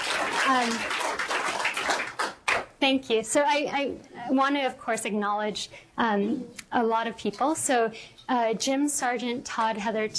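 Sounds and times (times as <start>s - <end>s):
audience applause: 0.0s - 2.6s
speech: 0.5s - 1.0s, 2.8s - 10.1s.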